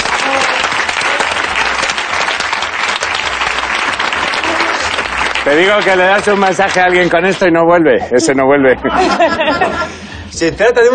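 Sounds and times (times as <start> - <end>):
loud audience applause: 0.0 - 7.5
laughter: 4.3 - 5.0, 8.0 - 10.0
speech: 5.5 - 10.9.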